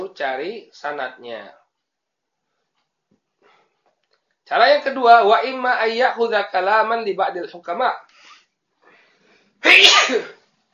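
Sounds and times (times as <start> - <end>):
speech: 0.2 - 1.6, 4.5 - 8.3, 9.6 - 10.4
person sneezing: 9.6 - 10.4.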